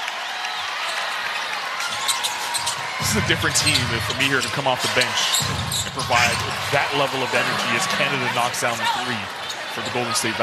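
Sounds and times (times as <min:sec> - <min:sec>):
crowd applauding player leaving the game: 0:00.0 - 0:05.3, 0:05.9 - 0:10.4
speech: 0:03.1 - 0:10.4.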